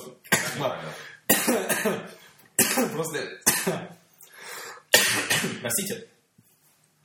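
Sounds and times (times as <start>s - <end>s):
speech: 0.1s - 2.0s, 2.8s - 4.0s, 5.4s - 6.2s
man coughing: 0.3s - 4.0s, 4.9s - 5.6s.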